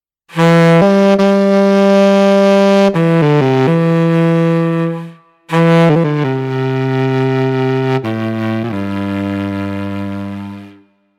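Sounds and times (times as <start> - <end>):
saxophone: 0.3 - 11.0.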